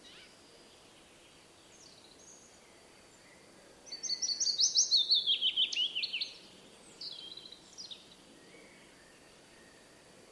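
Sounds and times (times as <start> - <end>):
willow warbler singing: 1.0 - 9.8.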